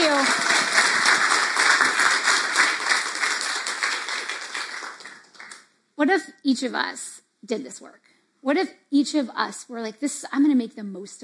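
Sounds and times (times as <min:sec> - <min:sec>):
audience clapping: 0:00.0 - 0:05.7
speech: 0:06.0 - 0:11.2.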